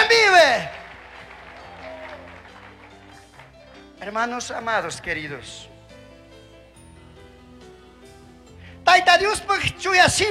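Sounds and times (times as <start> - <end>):
crowd clapping: 0.0 - 4.2
speech: 4.1 - 5.7, 9.0 - 10.3.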